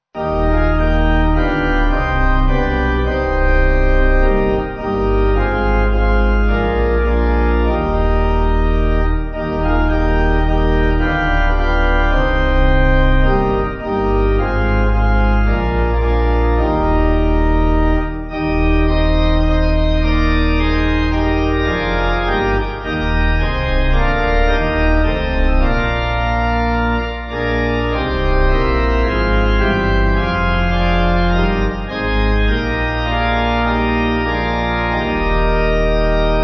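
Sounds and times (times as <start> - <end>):
church pipe organ backing music: 0.0 - 36.4.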